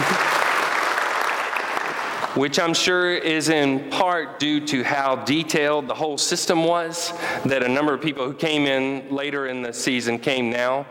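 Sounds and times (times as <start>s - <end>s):
crowd clapping: 0.0s - 2.6s
speech: 2.4s - 10.8s.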